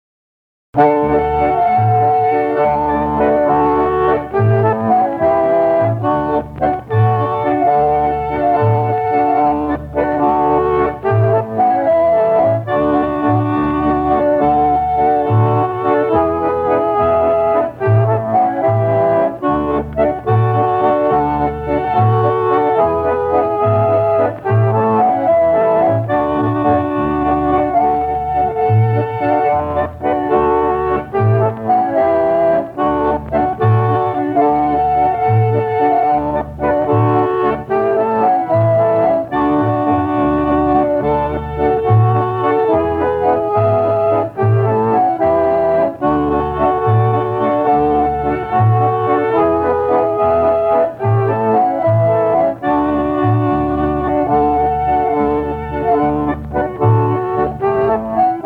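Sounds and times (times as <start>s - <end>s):
concertina playing a waltz: 0.8s - 58.4s.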